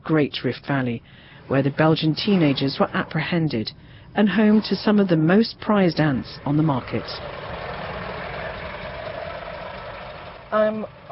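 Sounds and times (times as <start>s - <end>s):
speech: 0.1s - 7.4s, 10.5s - 11.1s
truck engine on highway: 0.7s - 11.1s.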